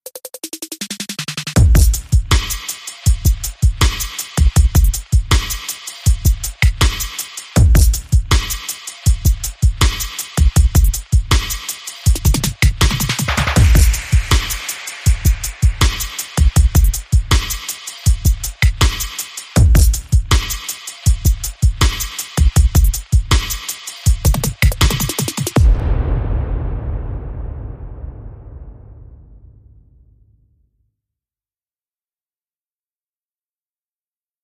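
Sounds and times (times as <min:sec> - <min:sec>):
music beat: 0:00.1 - 0:26.2.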